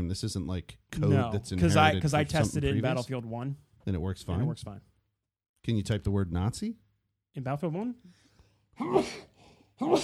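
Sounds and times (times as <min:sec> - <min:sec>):
speech: 0:00.0 - 0:04.9, 0:05.6 - 0:08.2, 0:08.8 - 0:10.0
person sneezing: 0:08.8 - 0:10.0.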